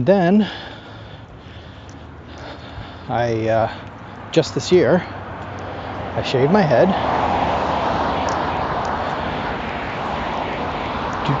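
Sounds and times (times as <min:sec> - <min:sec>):
speech: 0:00.0 - 0:00.7, 0:03.1 - 0:05.2, 0:06.2 - 0:07.2
loud cars passing: 0:00.0 - 0:11.3.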